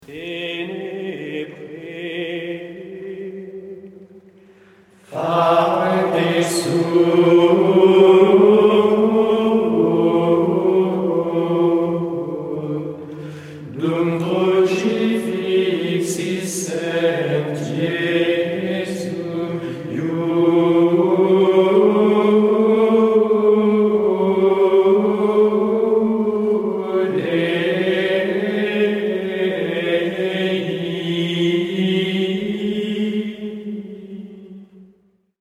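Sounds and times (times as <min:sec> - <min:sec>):
Gregorian chant: 0:00.0 - 0:35.0.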